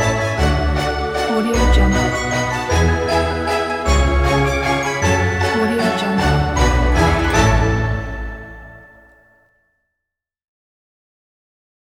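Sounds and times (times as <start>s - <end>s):
Christmas carol jingle logo: 0.0s - 9.4s.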